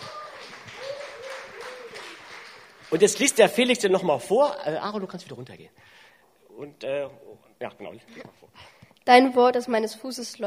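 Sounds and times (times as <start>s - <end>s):
faint voices and whoops: 0.0s - 2.4s
audience applause: 0.0s - 4.0s
speech: 2.9s - 10.4s.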